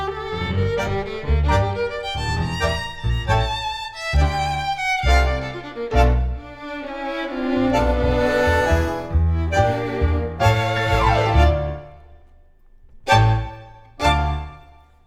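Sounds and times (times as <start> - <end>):
tango music: 0.0 - 12.2, 13.0 - 14.9.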